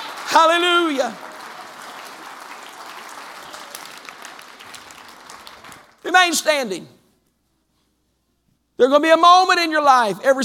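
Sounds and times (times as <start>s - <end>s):
audience clapping hands: 0.0s - 6.5s
speech: 0.3s - 1.3s, 6.1s - 7.0s, 8.8s - 10.4s.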